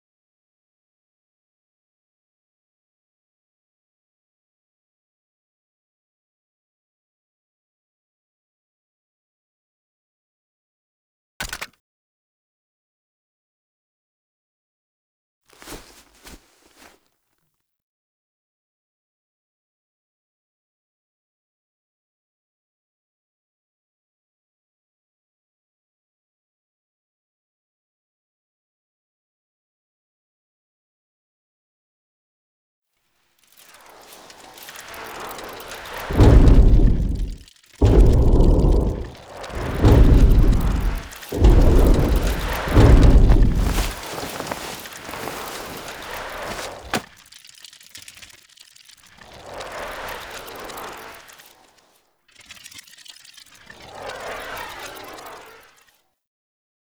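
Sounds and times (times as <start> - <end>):
landing foley: 36.1 - 47.0.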